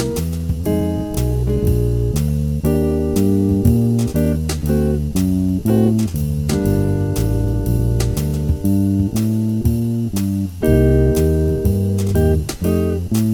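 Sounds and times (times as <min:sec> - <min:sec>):
120 bpm backing track: 0:00.0 - 0:13.3.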